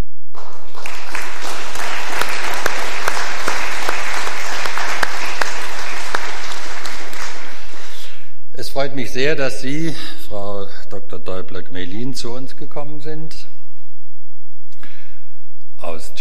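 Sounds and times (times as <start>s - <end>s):
audience applause: 0.4s - 8.2s
speech: 8.8s - 13.5s, 15.8s - 16.2s.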